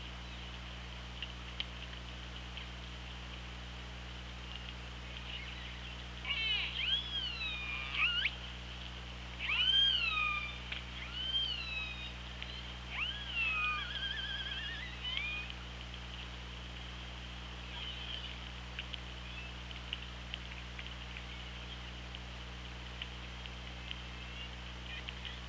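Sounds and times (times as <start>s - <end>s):
low hum: 0.0s - 25.4s
orca calls underwater: 5.2s - 8.4s, 9.4s - 15.6s, 17.6s - 18.5s.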